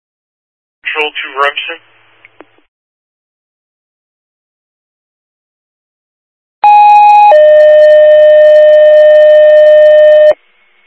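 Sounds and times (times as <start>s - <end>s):
speech: 1.0s - 1.9s
fire dispatch two-tone paging tones: 6.6s - 10.4s.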